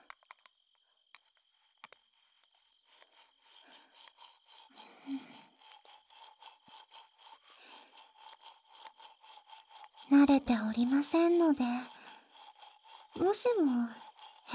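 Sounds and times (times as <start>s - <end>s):
toothbrush brushing lower teeth: 2.8s - 14.5s
speech: 10.3s - 12.0s, 13.2s - 14.5s.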